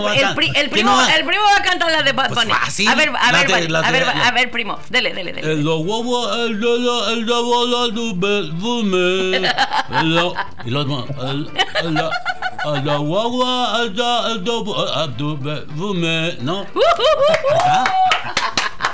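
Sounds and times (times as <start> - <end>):
laughter: 0.0 - 1.1, 9.3 - 13.2, 16.8 - 18.9
speech: 0.0 - 18.6
applause: 17.3 - 18.9.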